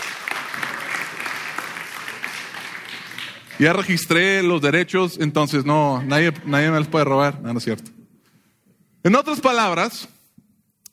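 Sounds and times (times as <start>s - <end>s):
applause: 0.0s - 4.4s
speech: 3.6s - 8.0s, 9.0s - 10.2s.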